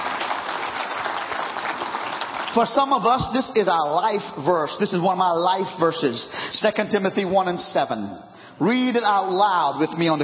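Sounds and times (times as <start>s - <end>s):
audience clapping: 0.0s - 3.8s
speech: 2.6s - 10.2s.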